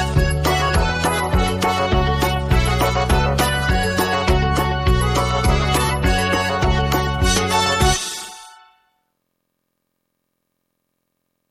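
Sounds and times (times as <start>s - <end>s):
backing track: 0.0s - 8.6s.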